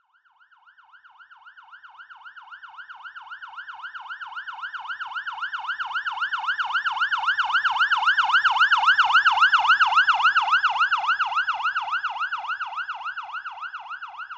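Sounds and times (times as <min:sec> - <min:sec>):
emergency fire truck siren passing by: 0:00.4 - 0:14.3.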